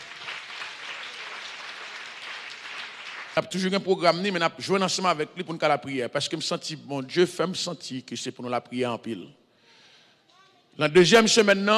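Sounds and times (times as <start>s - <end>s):
audience applause: 0.0s - 3.5s
speech: 3.4s - 9.4s, 10.8s - 11.7s.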